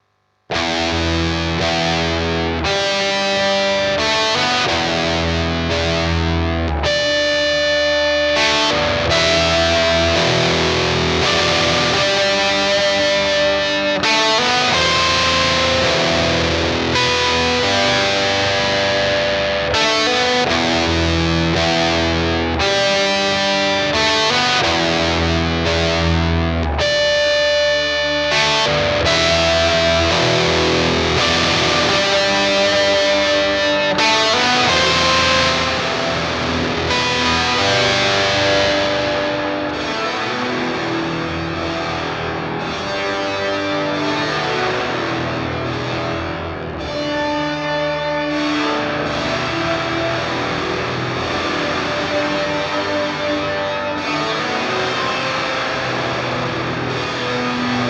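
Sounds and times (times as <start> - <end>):
high gain guitar through Meris Mercury 7 reverb: 0.0 - 57.8.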